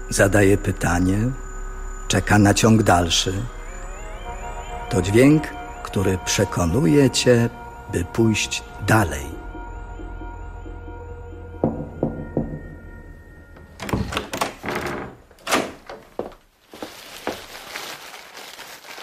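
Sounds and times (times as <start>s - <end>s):
low hum: 0.0s - 14.0s
speech: 0.1s - 1.4s, 2.1s - 3.6s, 4.9s - 9.4s
door quietly opening: 11.6s - 16.5s
shuffling footsteps: 15.9s - 19.0s
plastic bag rustling: 16.1s - 19.0s.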